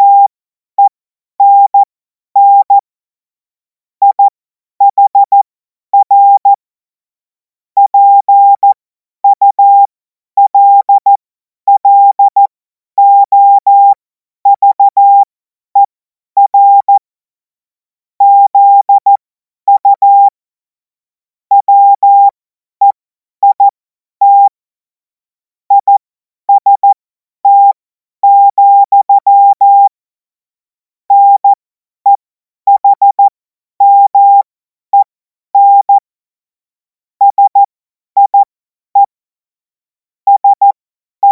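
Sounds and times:
CW Morse code beeps: 0:00.0 - 0:02.8, 0:04.0 - 0:05.4, 0:06.0 - 0:06.6, 0:07.8 - 0:17.0, 0:18.2 - 0:20.4, 0:21.5 - 0:24.6, 0:25.7 - 0:30.0, 0:31.1 - 0:36.0, 0:37.2 - 0:39.2, 0:40.3 - 0:41.3.

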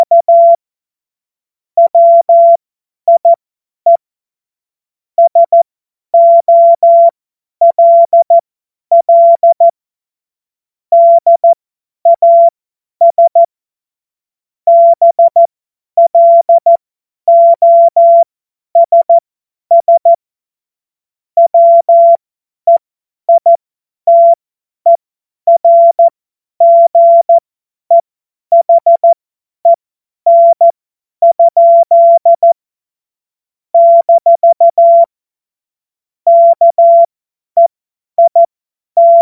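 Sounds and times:
CW Morse code beeps: 0:00.0 - 0:00.6, 0:01.8 - 0:04.0, 0:05.2 - 0:05.6, 0:06.2 - 0:09.7, 0:10.9 - 0:11.5, 0:12.1 - 0:13.5, 0:14.7 - 0:20.2, 0:21.4 - 0:32.6, 0:33.8 - 0:35.1, 0:36.3 - 0:39.2.

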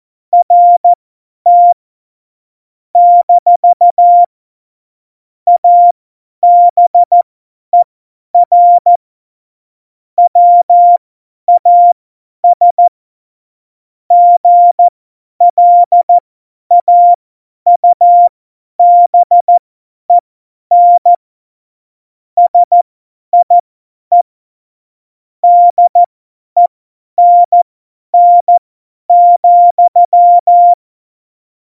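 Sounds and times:
CW Morse code beeps: 0:00.3 - 0:01.7, 0:03.0 - 0:04.3, 0:05.6 - 0:05.9, 0:06.5 - 0:07.1, 0:08.5 - 0:09.0, 0:10.2 - 0:11.0, 0:11.6 - 0:11.9, 0:12.5 - 0:12.9, 0:14.1 - 0:17.2, 0:17.8 - 0:21.2, 0:22.4 - 0:24.3, 0:25.5 - 0:30.8.

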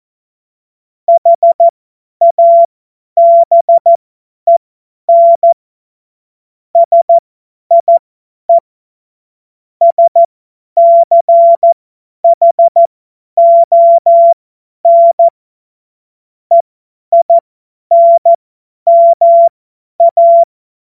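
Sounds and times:
CW Morse code beeps: 0:01.1 - 0:05.6, 0:06.8 - 0:08.0, 0:09.8 - 0:15.3, 0:16.5 - 0:20.5.

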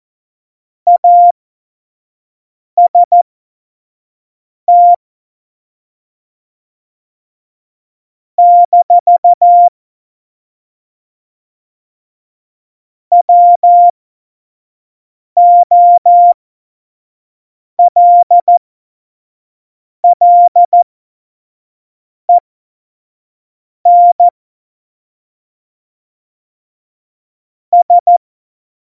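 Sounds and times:
morse code beeps at tempo 25: 0:00.9 - 0:01.3, 0:02.8 - 0:03.2, 0:04.7 - 0:05.0, 0:08.4 - 0:09.7, 0:13.1 - 0:13.9, 0:15.4 - 0:16.4, 0:17.8 - 0:18.6, 0:20.0 - 0:20.8, 0:23.9 - 0:24.4, 0:27.8 - 0:28.2.

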